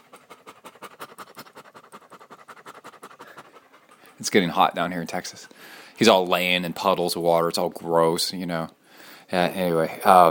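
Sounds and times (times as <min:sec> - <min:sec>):
dog panting: 0:00.0 - 0:06.0
speech: 0:04.2 - 0:10.2.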